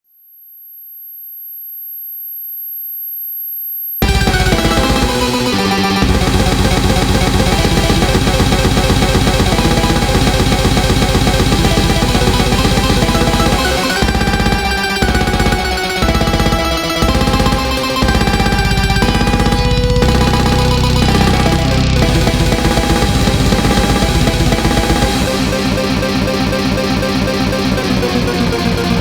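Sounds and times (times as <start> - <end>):
instrumental music: 4.0 - 29.0.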